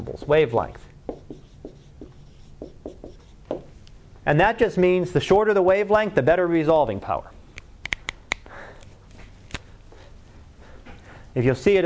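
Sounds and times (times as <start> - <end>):
speech: 0.0 - 0.9, 4.2 - 7.4, 11.4 - 11.8
marker or chalk strokes on a board during a lecture on telescopes: 1.1 - 3.7.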